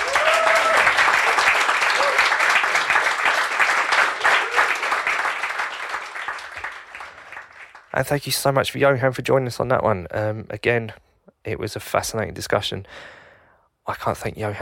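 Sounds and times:
audience applause: 0:00.0 - 0:08.0
speech: 0:08.0 - 0:13.2, 0:13.9 - 0:14.6.

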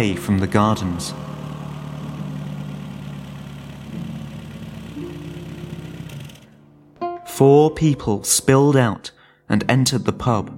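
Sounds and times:
speech: 0:00.0 - 0:01.4, 0:07.4 - 0:10.5
old VW camper engine growling: 0:00.0 - 0:06.7.

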